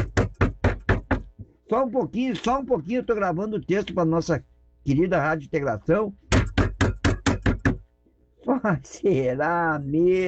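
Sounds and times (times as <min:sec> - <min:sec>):
knocking: 0:00.0 - 0:01.5, 0:06.3 - 0:07.9
speech: 0:01.7 - 0:06.2, 0:08.6 - 0:10.2.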